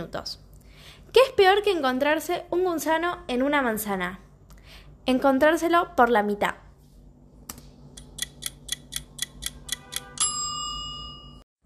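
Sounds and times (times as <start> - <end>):
speech: 0.0 - 0.4, 1.1 - 4.2, 5.0 - 6.6
kitchen timer ticking and ringing during a recipe: 8.0 - 11.4.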